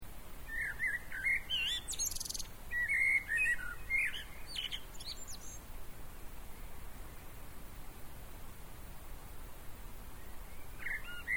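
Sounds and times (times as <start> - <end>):
faint hiss: 0.0 - 11.3
common blackbird warbling: 0.5 - 5.6, 10.2 - 11.3.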